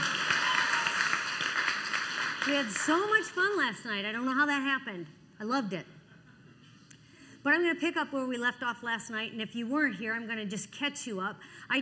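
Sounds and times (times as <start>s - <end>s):
audience clapping: 0.0s - 3.6s
speech: 2.4s - 6.0s, 7.4s - 11.8s.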